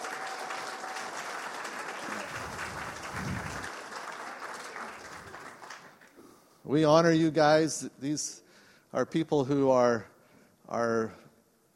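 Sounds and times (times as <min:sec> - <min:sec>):
morning audience applause welcoming guests onto a platform: 0:00.0 - 0:06.1
speech: 0:06.7 - 0:10.1, 0:10.7 - 0:11.2.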